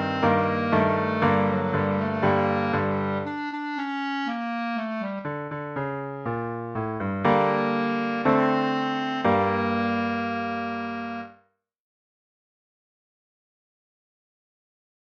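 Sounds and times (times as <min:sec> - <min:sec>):
clarinet: 0:00.0 - 0:11.4.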